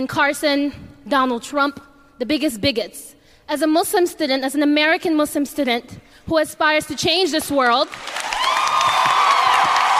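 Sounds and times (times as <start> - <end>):
speech: 0.0 - 8.5
audience cheering and applauding: 7.9 - 9.9.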